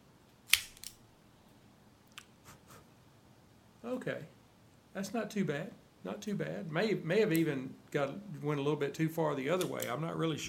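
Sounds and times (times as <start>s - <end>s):
Cassetti cutter clicks: 0.5s - 1.0s, 9.6s - 10.0s
guillotine Cassetti cutter snipping a Romeo y Julieta 1875 Nicaraguan cigar: 0.5s - 1.0s
speech: 3.9s - 4.4s, 5.0s - 10.4s.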